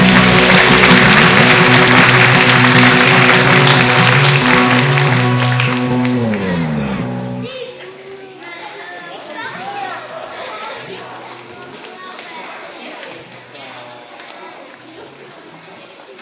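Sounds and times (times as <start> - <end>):
audience applause for children: 0.0 - 7.5.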